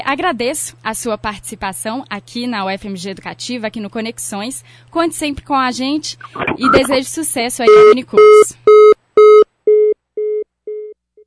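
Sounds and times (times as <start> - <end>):
speech: 0.1 - 8.9
telephone beeps after a dropped phone call: 6.2 - 7.0, 7.7 - 10.9.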